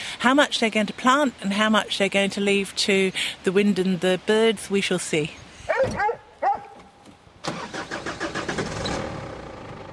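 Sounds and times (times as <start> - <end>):
speech: 0.2 - 6.2
large Hunterway dog barking: 5.7 - 6.8
vehicle engine cranking and rumbling: 7.4 - 9.9.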